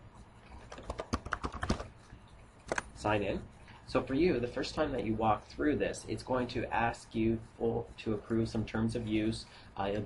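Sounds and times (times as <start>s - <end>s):
keyboard typing while logging in with a Live ID: 0.5s - 1.9s, 2.6s - 2.9s
speech: 3.0s - 10.0s.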